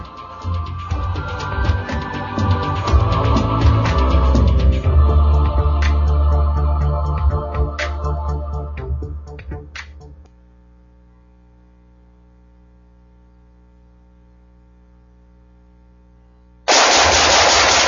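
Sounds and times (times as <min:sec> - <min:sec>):
low steady hum: 0:00.0 - 0:17.8
gunfire: 0:16.7 - 0:17.8.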